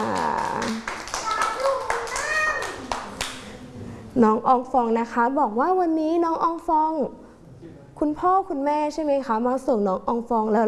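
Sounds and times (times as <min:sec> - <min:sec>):
group clapping: 0:00.0 - 0:03.6
young voices calling out: 0:01.2 - 0:03.0
speech: 0:04.2 - 0:07.2, 0:08.0 - 0:10.6.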